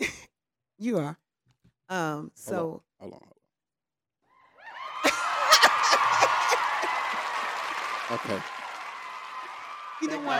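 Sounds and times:
speech: 0:00.8 - 0:01.2, 0:01.9 - 0:03.4, 0:08.1 - 0:08.6, 0:10.0 - 0:10.3
crowd whooping, cheering and laughing: 0:04.6 - 0:10.3
scattered audience clapping: 0:04.8 - 0:10.3.

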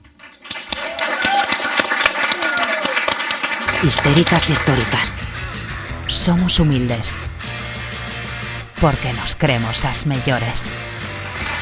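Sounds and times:
crowd applauding: 0:00.0 - 0:05.5, 0:11.0 - 0:11.6
faint voices and whoops: 0:00.7 - 0:03.2
speech: 0:03.8 - 0:05.3, 0:06.1 - 0:07.3, 0:08.8 - 0:10.9.

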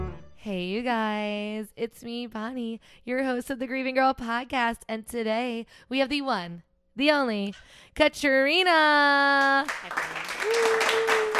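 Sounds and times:
speech: 0:00.5 - 0:11.3
applause sound effect: 0:09.4 - 0:11.3.

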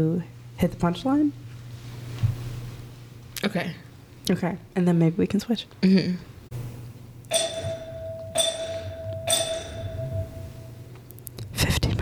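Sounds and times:
speech: 0:00.0 - 0:01.4, 0:03.4 - 0:06.3
low hum: 0:00.0 - 0:11.9
bell ringing: 0:07.3 - 0:10.9.

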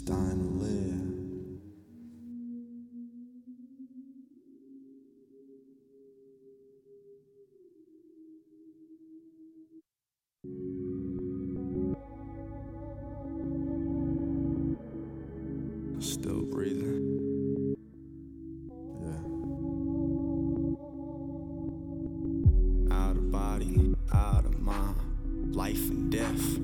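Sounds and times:
song with effects-processed vocals playing: 0:00.0 - 0:05.9, 0:10.5 - 0:26.6.

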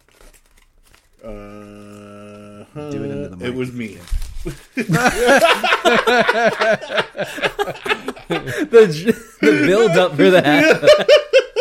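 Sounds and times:
paper being uncrumpled: 0:00.0 - 0:02.4, 0:03.4 - 0:05.7
speech: 0:01.2 - 0:01.8, 0:02.8 - 0:11.3
laughter: 0:04.5 - 0:11.5.

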